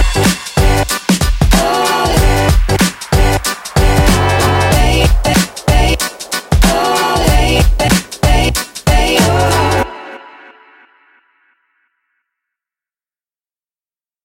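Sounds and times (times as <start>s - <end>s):
energetic urban hip hop music: 0.0s - 11.0s.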